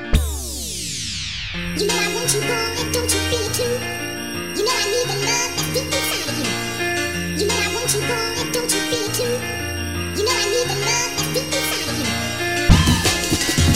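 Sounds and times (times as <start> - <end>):
dreamy frequency tone: 0.1 - 13.7.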